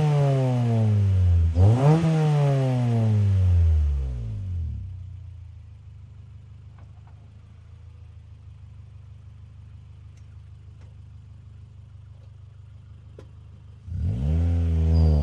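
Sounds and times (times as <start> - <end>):
Acura Integra engine revving: 0.0 - 5.0, 13.8 - 15.2
Acura Integra engine starting: 0.0 - 15.2
Acura Integra engine idling: 5.0 - 13.9.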